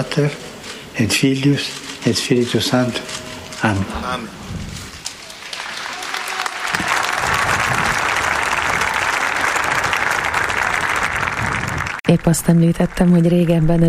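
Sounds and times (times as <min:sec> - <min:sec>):
speech: 0:00.0 - 0:00.4, 0:01.0 - 0:04.6, 0:12.1 - 0:13.8
audience applause at end of service: 0:05.0 - 0:12.0.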